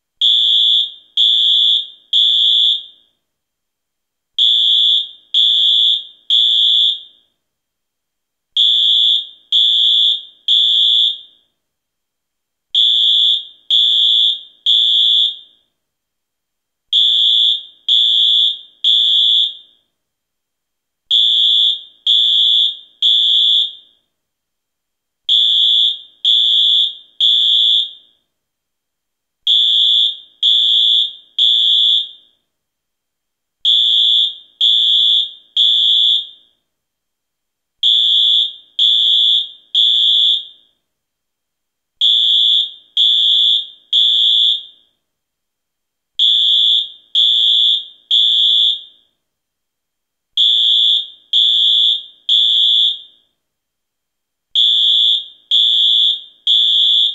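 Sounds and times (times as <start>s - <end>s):
fire alarm: 0.2s - 3.2s, 4.4s - 7.4s, 8.6s - 11.6s, 12.7s - 15.8s, 16.9s - 20.0s, 21.1s - 24.2s, 25.3s - 28.3s, 29.4s - 32.5s, 33.6s - 36.7s, 37.8s - 40.9s, 42.0s - 45.0s, 46.2s - 49.2s, 50.4s - 53.4s, 54.5s - 57.1s.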